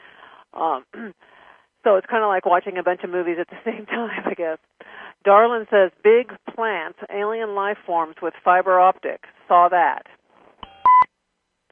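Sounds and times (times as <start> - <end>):
speech: 0.6 - 10.2
electronic beeps of an incoming phone call on a radio call-in show: 10.6 - 11.1.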